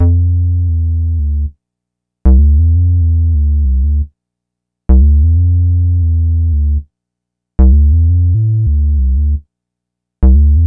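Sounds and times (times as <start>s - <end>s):
synth bass: 0.0s - 1.5s, 2.3s - 4.1s, 4.9s - 6.8s, 7.6s - 9.4s, 10.2s - 10.6s.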